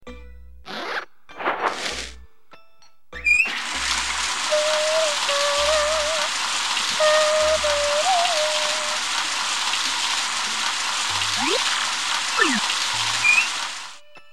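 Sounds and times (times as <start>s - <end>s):
shower running: 3.4s - 14.0s.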